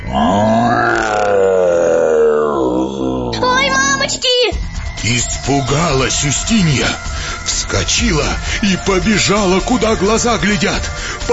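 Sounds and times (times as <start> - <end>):
voice imitating a dinosaur roar: 0.0 - 3.6
speech: 5.0 - 11.3.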